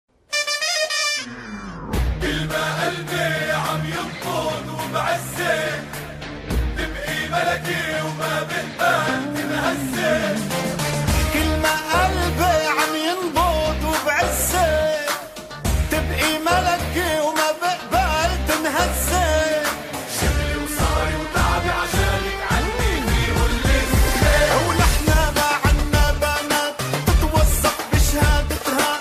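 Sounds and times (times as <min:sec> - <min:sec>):
Arabic bast music: 0:00.3 - 0:29.0.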